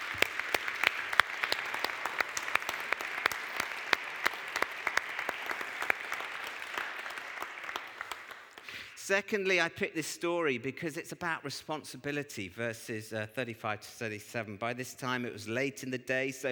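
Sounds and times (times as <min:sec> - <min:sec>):
audience applause: 0:00.0 - 0:09.0
speech: 0:09.1 - 0:16.5.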